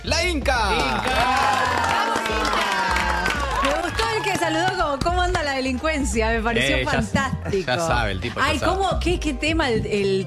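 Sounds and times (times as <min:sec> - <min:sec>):
speech: 0:00.0 - 0:01.2, 0:05.6 - 0:10.2
audience applause: 0:00.7 - 0:05.2.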